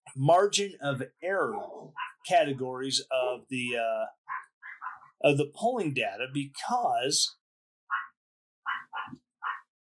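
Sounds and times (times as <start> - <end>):
speech: 0.2 - 4.4, 5.2 - 7.4
dog barking: 1.5 - 2.2, 4.3 - 5.2, 7.9 - 9.7.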